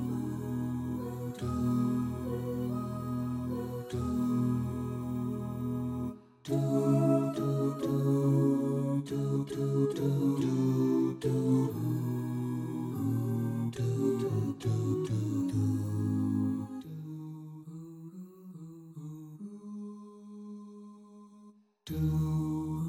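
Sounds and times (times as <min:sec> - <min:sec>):
bass: 0:00.0 - 0:16.9, 0:21.9 - 0:22.8.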